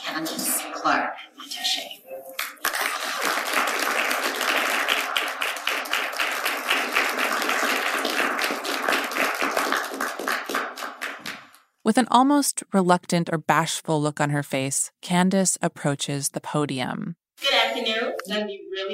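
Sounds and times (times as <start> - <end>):
speech: 0.2 - 2.0, 11.9 - 18.9
audience clapping softly: 2.3 - 11.7.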